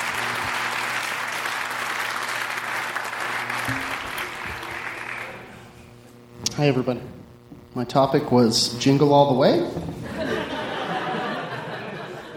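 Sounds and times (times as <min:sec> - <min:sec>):
audience clapping: 0:00.0 - 0:05.6
speech: 0:03.7 - 0:04.0, 0:06.6 - 0:07.2, 0:07.8 - 0:10.0
laughter: 0:10.0 - 0:12.3.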